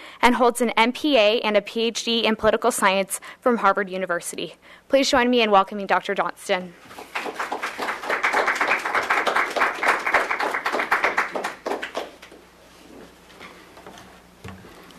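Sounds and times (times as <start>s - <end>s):
speech: 0.2s - 7.5s
audience applause: 6.9s - 12.3s.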